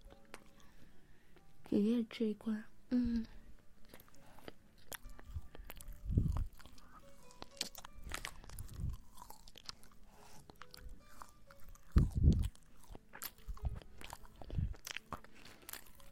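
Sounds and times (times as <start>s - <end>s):
speech: 1.7s - 3.4s
crunchy biting and chewing of food offered by a grandfather: 3.8s - 16.0s.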